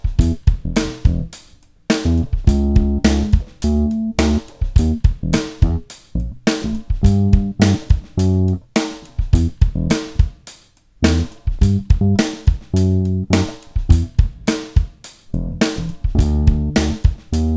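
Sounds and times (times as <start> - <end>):
bass sample: 0.2 - 1.3, 2.0 - 8.6, 9.4 - 10.0, 11.0 - 14.5, 15.3 - 17.5.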